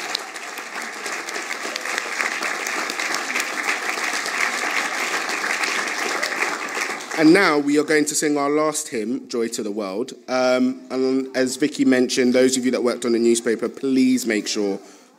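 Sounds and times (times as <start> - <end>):
audience applause: 0.0 - 7.8
speech: 7.2 - 15.0.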